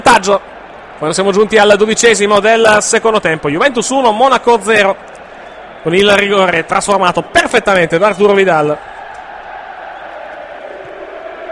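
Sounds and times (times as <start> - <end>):
speech: 0.1 - 5.2, 5.8 - 8.9
Juventus fans singing in the stadium during a match against Monaco: 8.8 - 11.5.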